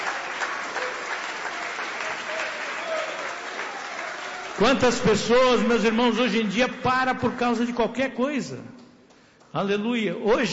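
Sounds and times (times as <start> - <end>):
audience clapping hands: 0.0 - 5.1
speech: 4.6 - 8.7, 9.5 - 10.5.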